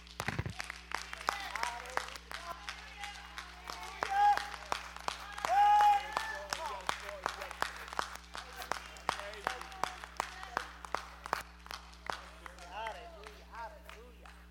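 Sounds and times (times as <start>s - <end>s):
audience clapping hands: 0.0s - 14.4s
raised voices and whoops: 2.4s - 7.5s.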